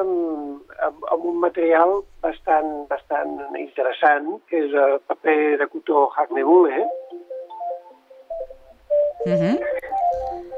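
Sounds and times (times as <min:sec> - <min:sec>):
speech: 0:00.8 - 0:07.0, 0:09.2 - 0:10.2
electronic telephone tones: 0:06.9 - 0:10.5.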